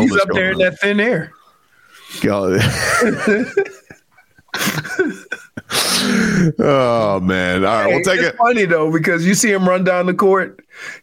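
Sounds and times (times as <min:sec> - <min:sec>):
speech: 0:00.1 - 0:01.4, 0:02.1 - 0:03.8, 0:04.6 - 0:11.0
laughter: 0:02.4 - 0:07.2
person sneezing: 0:05.7 - 0:06.5.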